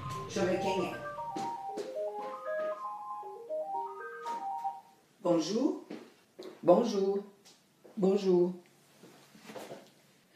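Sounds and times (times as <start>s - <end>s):
phone ringing: 0.0s - 5.0s
speech: 0.3s - 1.1s, 5.2s - 5.9s, 6.6s - 7.3s, 8.0s - 8.6s.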